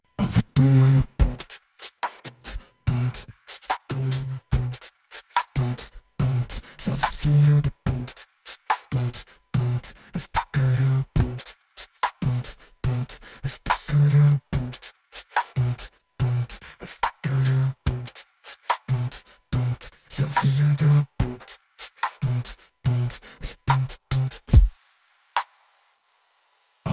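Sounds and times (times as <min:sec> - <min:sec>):
drums: 0:00.2 - 0:15.9, 0:16.6 - 0:25.8.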